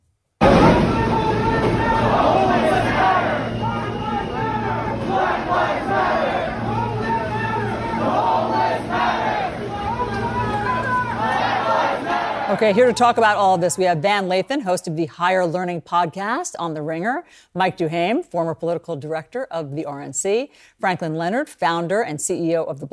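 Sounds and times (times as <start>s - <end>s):
protesters chanting in a subway: 0.4s - 13.5s
steady low hum: 0.4s - 14.0s
speech: 12.6s - 22.9s.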